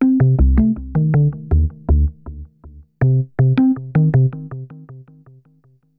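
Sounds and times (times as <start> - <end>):
ambient synth bass: 0.0 - 4.4.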